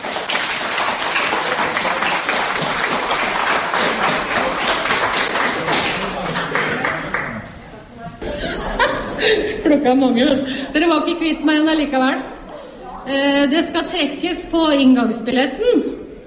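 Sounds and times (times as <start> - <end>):
audience applause: 0.0 - 7.6
laughter: 1.4 - 10.6
speech: 9.7 - 12.3, 13.1 - 15.9.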